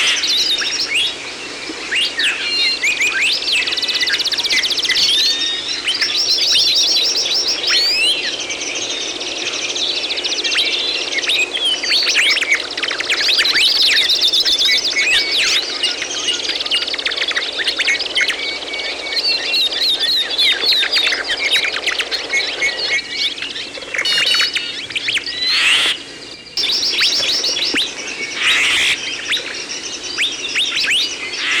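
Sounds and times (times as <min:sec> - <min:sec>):
bird chorus chirping, trilling and whistling: 0:00.0 - 0:31.5.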